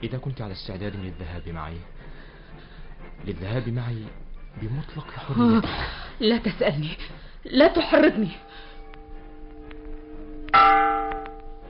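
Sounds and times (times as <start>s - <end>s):
speech: 0.0s - 2.2s, 3.2s - 8.7s
ship's bell calling passengers to board the steamship: 8.0s - 11.6s.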